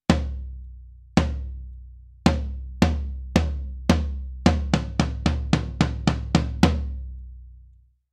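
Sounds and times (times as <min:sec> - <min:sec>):
floor tom drum: 0:00.1 - 0:07.1.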